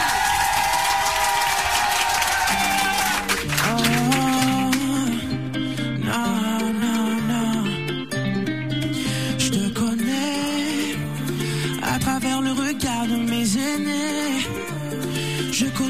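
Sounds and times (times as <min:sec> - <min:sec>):
audience clapping and cheering at a live show: 0:00.0 - 0:05.2
instrumental music with a bass line: 0:02.6 - 0:15.8.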